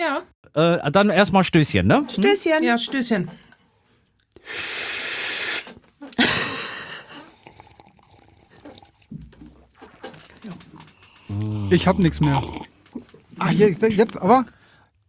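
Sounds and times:
speech: 0.0s - 3.5s, 4.4s - 4.9s, 11.3s - 12.7s, 13.4s - 14.6s
mouth noises: 4.4s - 6.2s, 9.9s - 14.3s
person slurping a drink: 4.4s - 13.4s
murmuring: 10.1s - 13.9s.

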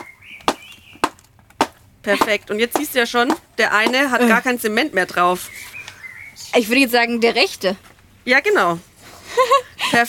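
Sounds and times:
two shoes knocked together hard: 0.0s - 4.5s
speech: 2.0s - 5.7s, 6.5s - 10.0s
laughter: 9.3s - 10.0s.

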